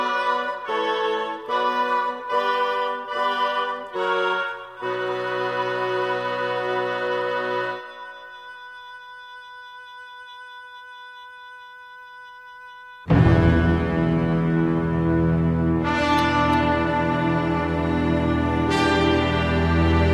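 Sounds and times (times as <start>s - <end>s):
fanfare: 0.0s - 8.1s, 13.1s - 20.1s.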